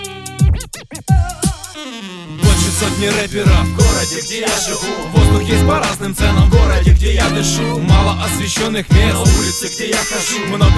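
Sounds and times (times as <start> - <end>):
DJ record scratching: 2.4 - 10.2
speech: 2.8 - 10.7.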